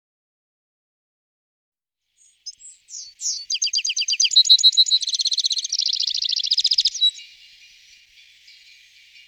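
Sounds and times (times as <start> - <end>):
citril finch singing: 2.2 - 9.2.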